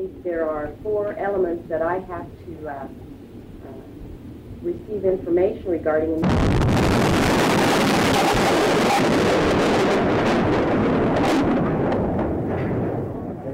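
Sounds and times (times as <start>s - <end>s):
speech: 0.0s - 4.0s, 4.6s - 10.8s
massive car bomb exploding outside a federal building in Oklahoma City: 6.2s - 13.4s.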